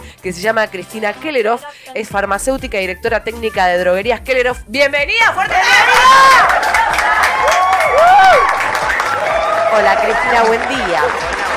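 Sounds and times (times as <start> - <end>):
speech: 0.2 - 7.2, 9.7 - 11.4
audience applause and cheering: 5.5 - 11.5.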